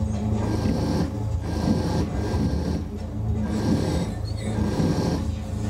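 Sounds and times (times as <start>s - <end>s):
shaker motor humming: 0.2s - 5.5s
rough rattling and buzzing: 0.2s - 5.6s.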